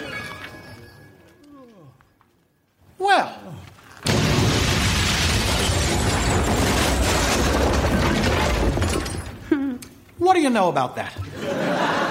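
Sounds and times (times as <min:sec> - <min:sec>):
house collapsing with a boom: 0:04.0 - 0:09.5
speech: 0:10.6 - 0:11.6
laughter: 0:11.3 - 0:12.0.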